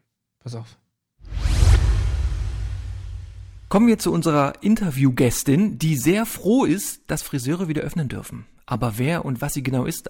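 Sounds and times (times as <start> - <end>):
speech: 0.4 - 0.8, 3.7 - 10.0
swoosh sound effect: 1.2 - 4.1
low rumble: 1.3 - 4.0.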